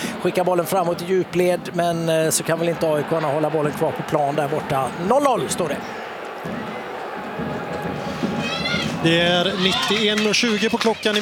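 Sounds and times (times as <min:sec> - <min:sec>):
speech: 0:00.2 - 0:06.7, 0:09.0 - 0:11.1
home crowd applauding and cheering at a football match in Vittsjö: 0:02.5 - 0:11.1.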